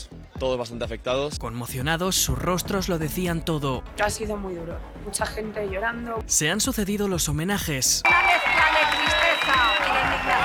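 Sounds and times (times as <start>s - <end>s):
speech: 0.0s - 8.6s
crowd applauding at a memorial tribute: 8.0s - 10.4s.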